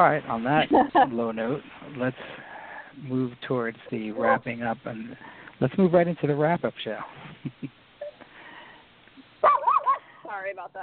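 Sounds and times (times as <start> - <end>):
speech: 0.0 - 2.4, 3.0 - 7.7, 10.3 - 10.8
dogs fighting on the sidewalk: 9.4 - 10.0.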